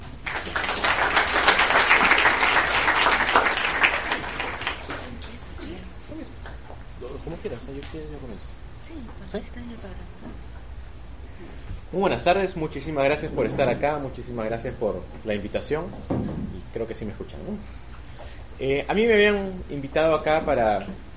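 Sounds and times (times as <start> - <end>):
audience applause: 0.0 - 5.5
speech: 11.9 - 17.9, 18.6 - 21.1.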